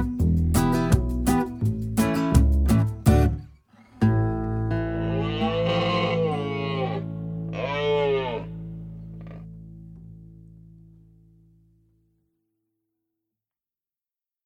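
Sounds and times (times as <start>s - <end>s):
instrumental music: 0.0s - 11.3s.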